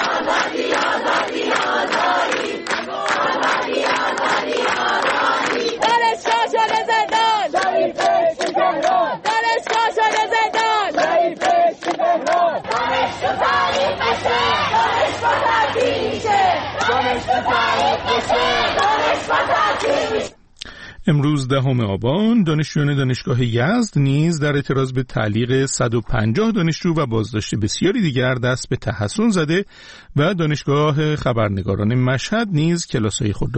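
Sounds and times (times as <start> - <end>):
students of Allameh University chanting protest slogans: 0.0 - 20.4
speech: 21.1 - 33.5.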